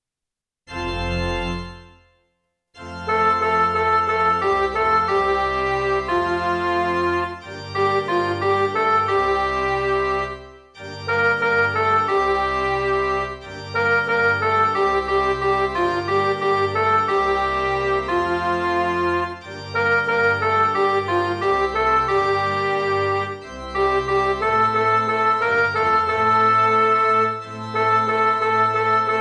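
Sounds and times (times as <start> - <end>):
divine office MIDI music: 2.8 - 29.1.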